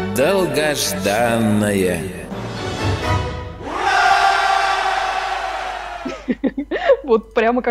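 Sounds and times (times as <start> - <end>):
speech: 0.2 - 2.2, 7.1 - 7.6
people shouting hurrah in jingle: 3.6 - 6.1
laughter: 6.0 - 7.0.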